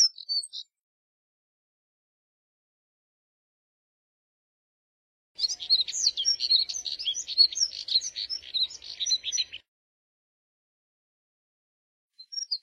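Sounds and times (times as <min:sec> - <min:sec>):
Moussier's redstart twittering warble: 0:05.4 - 0:09.6.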